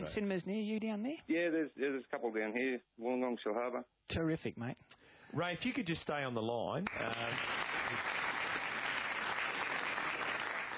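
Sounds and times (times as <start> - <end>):
speech: 0.0 - 8.3
crowd applause: 6.9 - 10.7.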